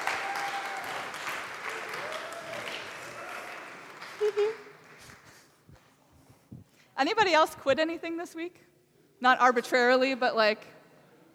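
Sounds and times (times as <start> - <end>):
audience cheering and applauding: 0.0 - 5.2
speech: 4.3 - 4.6, 7.0 - 10.8.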